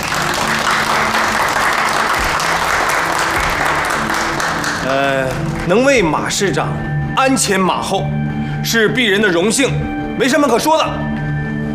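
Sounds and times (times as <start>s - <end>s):
crowd applauding to welcome a deputy mayor: 0.0s - 6.4s
speech: 4.9s - 11.1s.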